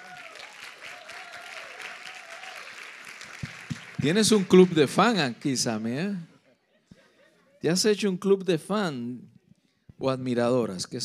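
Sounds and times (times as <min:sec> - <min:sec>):
audience applause: 0:00.0 - 0:05.4
speech: 0:04.0 - 0:06.3, 0:07.6 - 0:09.3, 0:10.0 - 0:11.0.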